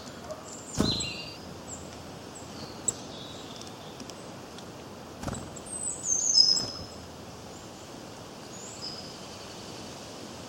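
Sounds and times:
constant hiss: 0.0 - 10.4
high bird chirps: 0.6 - 1.4, 5.5 - 7.0.

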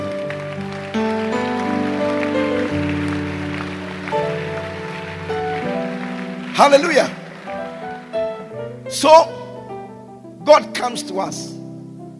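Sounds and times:
audience clapping: 0.0 - 9.2
speech: 6.6 - 7.2, 9.0 - 9.4, 10.5 - 11.6.

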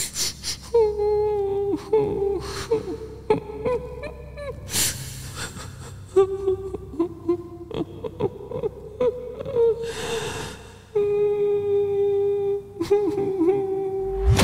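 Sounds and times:
woman crying softly: 0.0 - 14.3.

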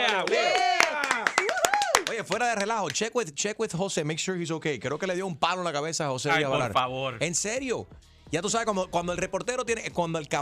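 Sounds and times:
scattered hand claps: 0.0 - 3.1
speech: 2.2 - 10.4.

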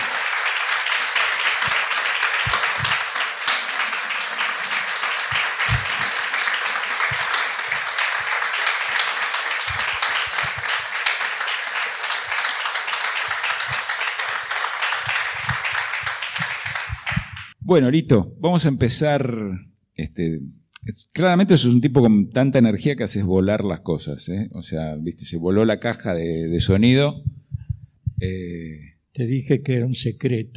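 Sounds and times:
welcoming applause from audience: 0.0 - 17.6
speech: 17.7 - 27.4, 28.2 - 30.5.

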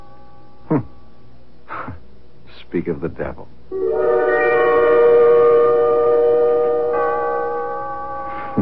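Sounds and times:
clock chime: 0.0 - 1.2, 3.7 - 8.6
speech: 0.7 - 0.9, 2.7 - 4.2.

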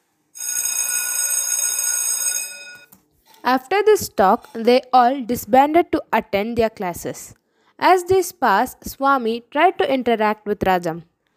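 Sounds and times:
school bell ringing: 0.4 - 2.9
speech: 3.4 - 11.1.

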